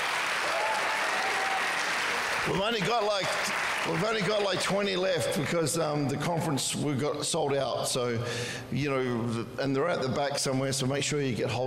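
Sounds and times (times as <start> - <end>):
audience clapping: 0.0 - 5.9
speech: 2.5 - 11.6.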